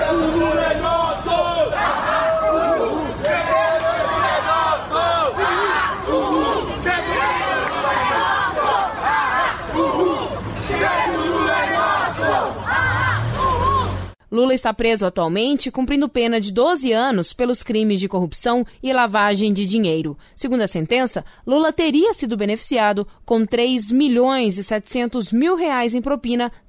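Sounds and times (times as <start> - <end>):
protesters shouting slogans: 0.0 - 14.2
speech: 14.6 - 26.6.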